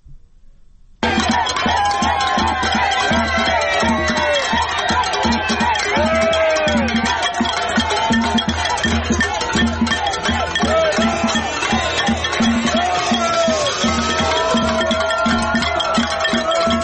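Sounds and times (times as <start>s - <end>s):
crowd of Fidel Castro opponents celebrating in Miami: 1.0s - 16.8s.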